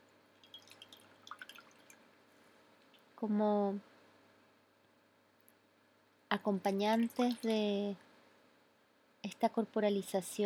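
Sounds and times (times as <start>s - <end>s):
water dripping: 0.4s - 2.1s, 6.7s - 7.6s
speech: 3.2s - 3.9s, 6.4s - 8.1s, 9.4s - 10.4s.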